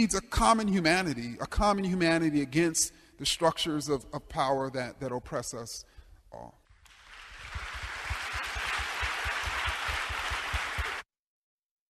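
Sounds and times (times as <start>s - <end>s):
speech: 0.0s - 6.6s
audience applause: 6.9s - 11.1s.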